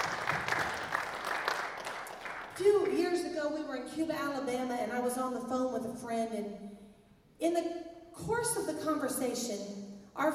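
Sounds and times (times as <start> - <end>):
audience clapping: 0.0 - 2.9
speech: 2.6 - 6.8, 7.4 - 10.3.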